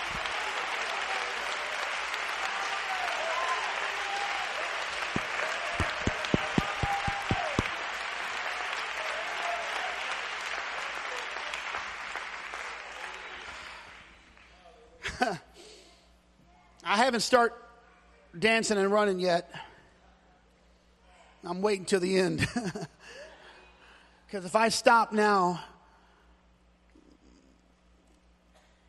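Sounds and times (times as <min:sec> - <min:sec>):
audience clapping and cheering: 0:00.0 - 0:14.6
sharp rhythmic loud claps: 0:04.6 - 0:12.9
speech: 0:17.1 - 0:17.6, 0:18.4 - 0:19.7, 0:21.5 - 0:23.0, 0:24.3 - 0:25.7.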